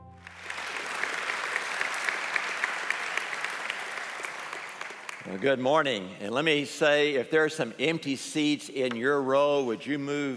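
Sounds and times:
audience applause at a church gospel gathering: 0.0 - 5.5
speech: 5.2 - 10.3.

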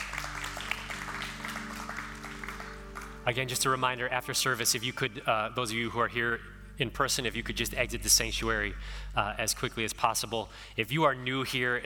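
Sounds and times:
audience clapping: 0.0 - 3.6
speech: 3.3 - 11.8.

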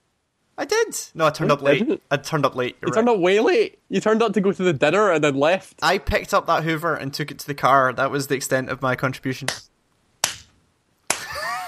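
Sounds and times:
speech: 0.6 - 9.7
slow hand clap: 10.2 - 10.5, 11.1 - 11.5.

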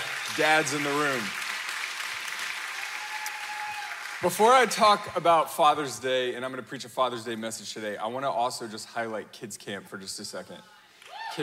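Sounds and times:
audience hand clapping: 0.0 - 4.7
speech: 0.4 - 1.4, 4.2 - 10.8.

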